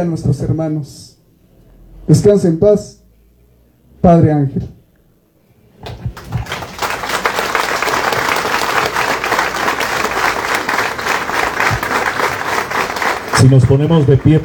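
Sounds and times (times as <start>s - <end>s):
speech: 0.0s - 1.2s, 2.1s - 3.0s, 4.0s - 4.8s, 13.4s - 14.4s
applause: 5.8s - 14.4s.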